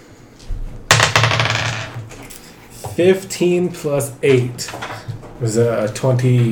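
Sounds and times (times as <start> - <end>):
dice clattering and tumbling: 0.9 - 2.4
speech: 3.0 - 4.8, 5.4 - 6.4.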